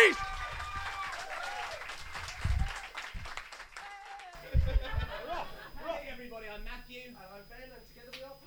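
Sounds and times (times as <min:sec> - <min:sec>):
audience clapping for headline act: 0:00.0 - 0:04.4
laughter: 0:04.4 - 0:06.2.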